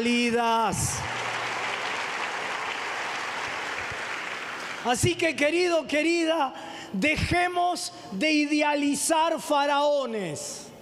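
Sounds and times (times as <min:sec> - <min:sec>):
speech: 0:00.0 - 0:01.2, 0:04.8 - 0:10.7
audience applause: 0:01.0 - 0:05.0.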